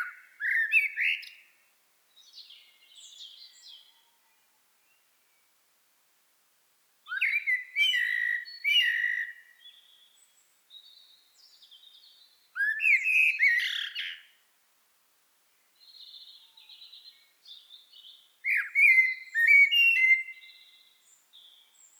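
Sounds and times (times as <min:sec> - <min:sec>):
common blackbird Turdus merula singing: 0:00.0 - 0:01.5, 0:02.2 - 0:04.0, 0:07.1 - 0:14.4, 0:15.8 - 0:21.9.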